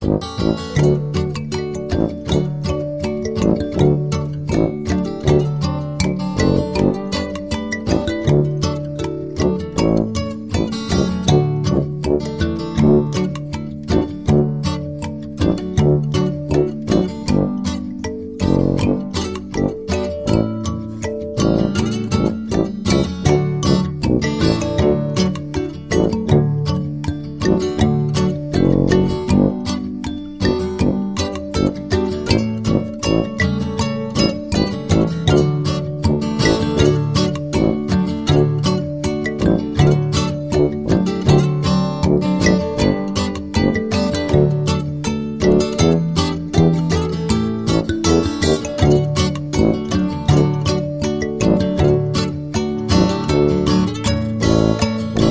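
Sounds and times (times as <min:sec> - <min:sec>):
upbeat christmas music: 0:00.0 - 0:55.2.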